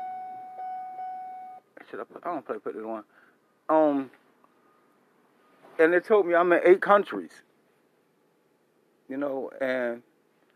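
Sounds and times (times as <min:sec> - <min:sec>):
car seatbelt warning chime: 0:00.0 - 0:01.6
speech: 0:01.9 - 0:04.2, 0:05.8 - 0:07.5, 0:09.1 - 0:10.1.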